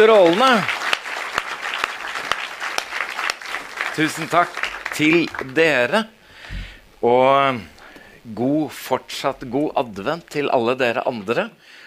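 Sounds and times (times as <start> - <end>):
speech: 0.0 - 0.8, 4.0 - 6.2, 7.0 - 11.8
audience applause for singers and musicians at an Advent concert: 0.0 - 7.7.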